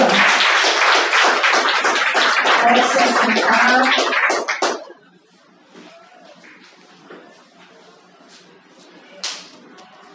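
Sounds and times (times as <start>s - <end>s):
crowd applauding: 0.0s - 4.9s.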